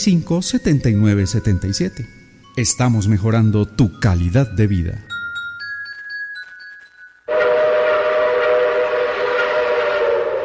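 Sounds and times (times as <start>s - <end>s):
speech: 0.0s - 5.1s
high whistle-like tone: 7.3s - 10.4s
train arriving at Floresta station: 7.3s - 10.4s.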